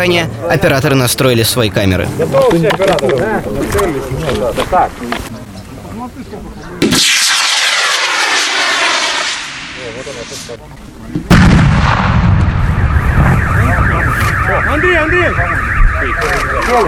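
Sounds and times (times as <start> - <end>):
speech: 0.0 - 5.3, 6.1 - 7.3, 9.9 - 12.3, 14.5 - 16.8
mine-clearing charge detonation: 6.8 - 10.5, 11.2 - 16.8
portable mine-clearing charge rocket launch: 6.8 - 10.6, 11.3 - 14.6.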